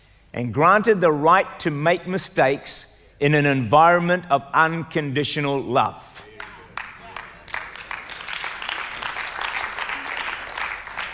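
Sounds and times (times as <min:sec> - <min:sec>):
speech: 0:00.3 - 0:06.2
audience clapping: 0:06.3 - 0:11.1.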